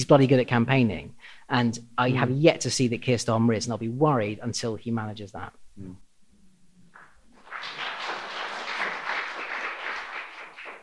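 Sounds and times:
speech: 0.0 - 6.0
applause: 6.9 - 10.8.

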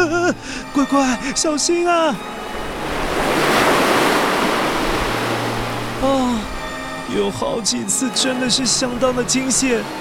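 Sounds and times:
speech: 0.4 - 2.6, 6.0 - 6.4, 7.1 - 9.9
heavy storm waves crashing against a ship: 2.5 - 6.2.

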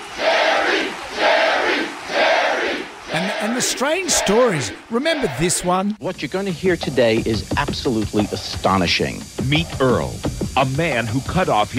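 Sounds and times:
studio audience crowd chanting: 0.0 - 5.7
speech: 3.5 - 11.7.

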